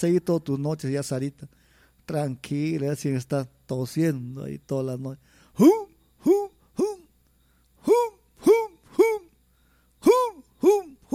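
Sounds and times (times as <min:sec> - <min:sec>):
speech: 0:00.0 - 0:06.4
voice imitating a tigress mating call: 0:05.6 - 0:07.1, 0:07.8 - 0:09.4, 0:10.0 - 0:11.1.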